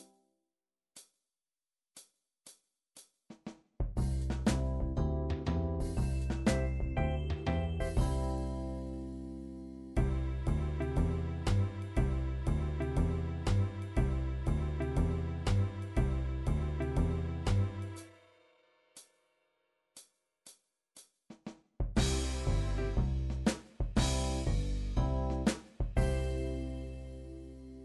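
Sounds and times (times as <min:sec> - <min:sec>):
MIDI swing music: 0:03.9 - 0:09.3, 0:09.9 - 0:18.1, 0:21.9 - 0:27.8.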